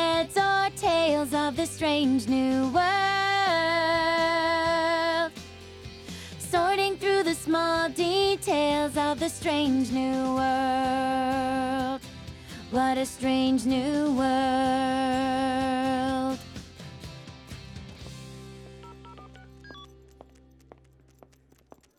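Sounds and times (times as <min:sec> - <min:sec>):
a cappella singing: 0:00.0 - 0:05.3, 0:06.4 - 0:12.0, 0:12.7 - 0:16.4.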